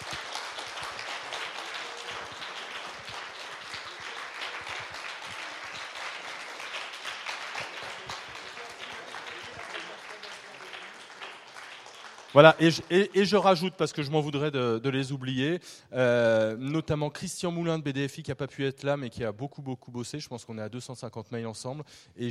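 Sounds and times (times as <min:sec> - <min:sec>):
audience applause: 0:00.0 - 0:13.6
speech: 0:12.4 - 0:22.2.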